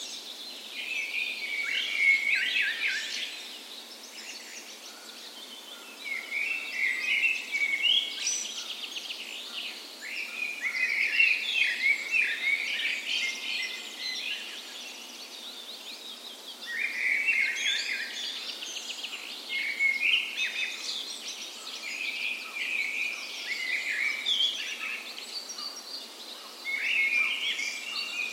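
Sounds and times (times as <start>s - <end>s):
birds dawn chorus: 0.0s - 28.3s
steady hiss: 0.0s - 28.3s.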